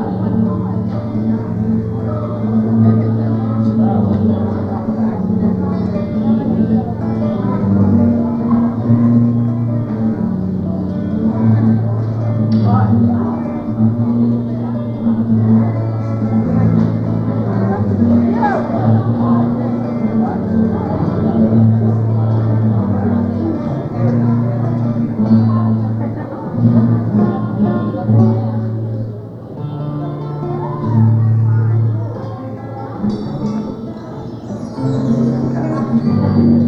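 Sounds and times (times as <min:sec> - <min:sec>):
acoustic guitar solo: 0:00.0 - 0:36.6.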